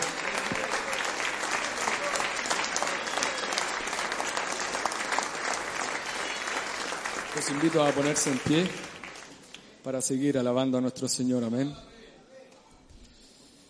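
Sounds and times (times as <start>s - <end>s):
audience applauding loudly: 0.0s - 9.7s
speech: 7.4s - 8.9s, 9.8s - 11.9s.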